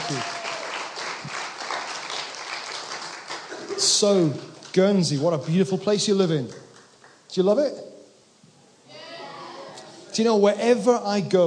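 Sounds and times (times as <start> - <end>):
crowd applauding: 0.0 - 7.2
speech: 0.1 - 0.4, 3.8 - 6.6, 7.4 - 7.9, 10.2 - 11.4.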